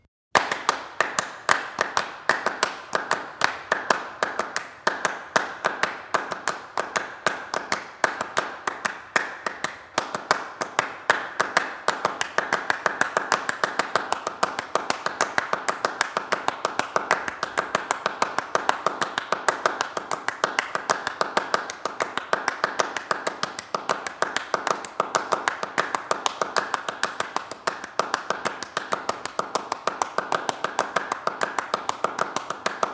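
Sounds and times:
two sets of interlocking phased hand claps: 0.0 - 32.9.

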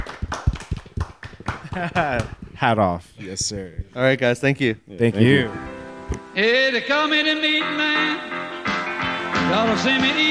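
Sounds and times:
round of applause: 0.0 - 2.4
speech: 1.8 - 8.4, 9.5 - 10.2.

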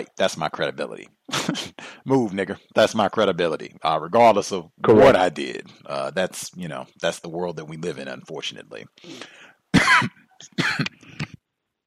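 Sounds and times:
speech: 0.0 - 11.2
man coughing from choking: 9.7 - 11.4.

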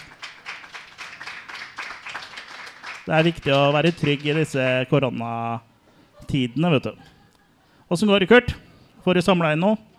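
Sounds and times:
audience clapping: 0.0 - 4.9
speech: 3.1 - 7.1, 7.9 - 9.9
laughter: 6.2 - 7.9.

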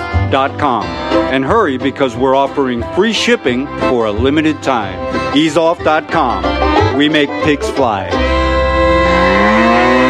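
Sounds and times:
speech: 0.3 - 8.3
cow mooing: 8.6 - 10.0.

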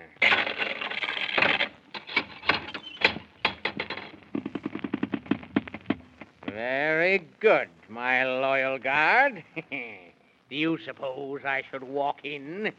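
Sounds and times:
golden key unlocking a chained gate: 0.2 - 4.2
golden key and chained gate metallic clatter: 0.2 - 6.0
speech: 6.6 - 12.7.

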